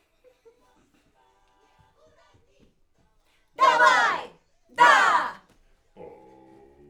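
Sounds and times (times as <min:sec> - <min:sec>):
backing vocals on AKG microphone: 0:03.6 - 0:05.4.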